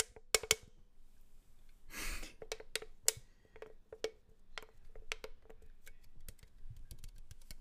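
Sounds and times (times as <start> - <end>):
can being tapped and handled: 0.0 - 0.7, 2.4 - 7.5.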